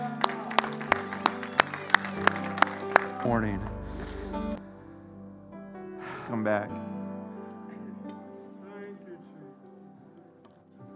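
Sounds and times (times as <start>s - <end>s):
audience hand clapping: 0.0s - 3.3s
speech: 3.2s - 3.8s, 6.3s - 7.0s.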